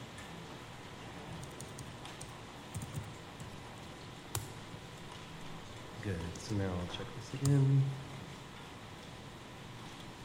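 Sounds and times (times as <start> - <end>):
typing on a computer keyboard: 1.4 - 3.6
speech: 6.0 - 8.1.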